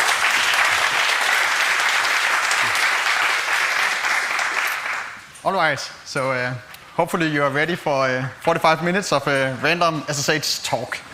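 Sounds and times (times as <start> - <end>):
audience applause: 0.0 - 5.2
speech: 5.5 - 11.1.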